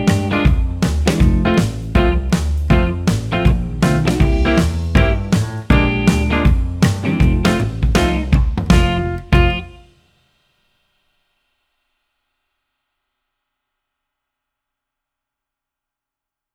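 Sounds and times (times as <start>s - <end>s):
jazz backing track: 0.0s - 10.0s.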